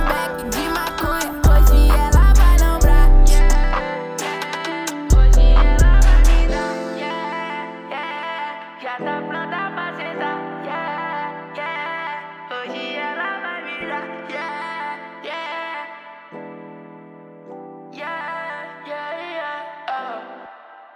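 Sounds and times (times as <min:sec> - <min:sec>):
music beat: 0:00.0 - 0:07.5.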